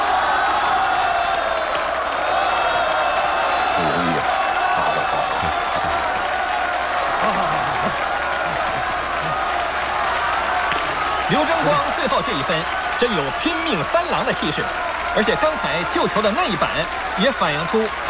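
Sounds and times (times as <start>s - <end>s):
large stadium crowd applauding: 0.0s - 18.0s
laughter: 3.6s - 10.2s
speech: 12.3s - 18.0s.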